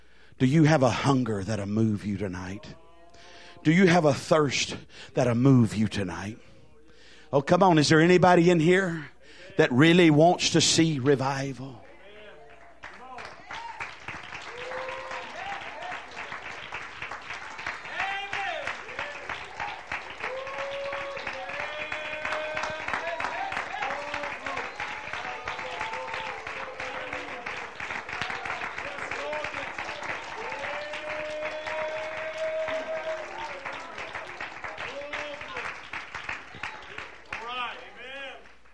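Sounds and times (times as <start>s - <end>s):
speech: 0.4s - 2.8s, 3.6s - 6.5s, 7.3s - 11.8s
audience clapping and applauding: 12.0s - 38.7s.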